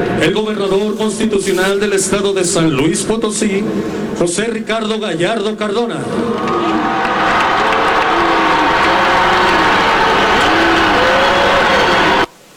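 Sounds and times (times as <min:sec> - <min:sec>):
speech: 0:00.0 - 0:07.5
crowd applauding: 0:06.0 - 0:12.3.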